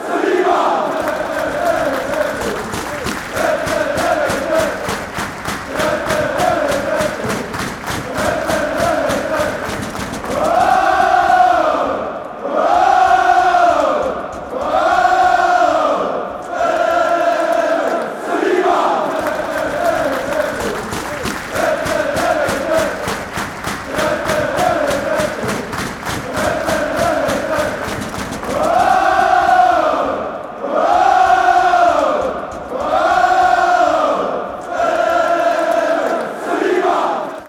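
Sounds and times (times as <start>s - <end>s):
chanting: 0.0s - 37.4s.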